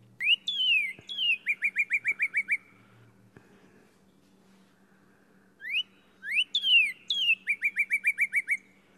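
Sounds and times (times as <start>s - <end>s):
Northern Cardinal whistled song: 0.2s - 2.8s, 5.6s - 8.7s.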